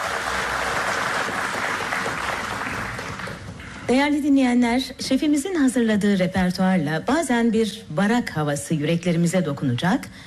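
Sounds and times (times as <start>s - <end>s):
applause for the conductor of a Turkish folk music ensemble: 0.0s - 3.6s
speech: 3.9s - 10.2s.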